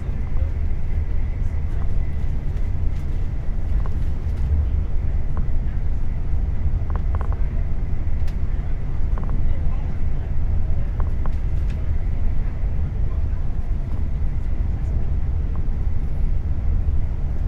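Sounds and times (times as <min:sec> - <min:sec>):
train: 0:00.0 - 0:17.4.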